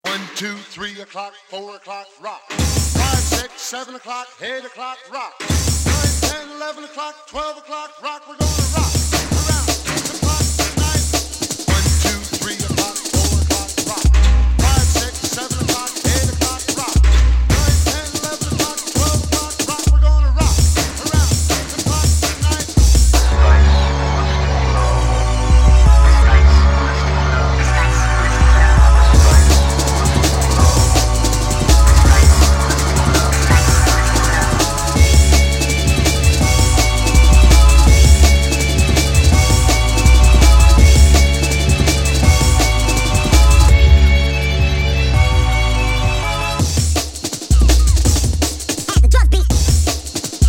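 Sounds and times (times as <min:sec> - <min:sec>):
remix music: 0:00.0 - 0:50.4.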